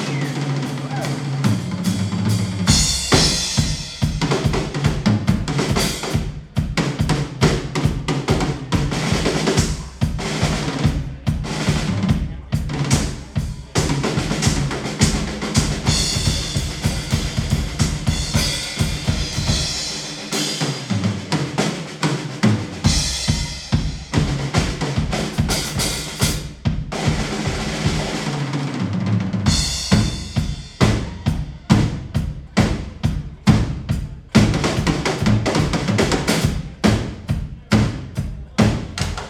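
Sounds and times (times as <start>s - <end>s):
drums: 0.0s - 39.2s.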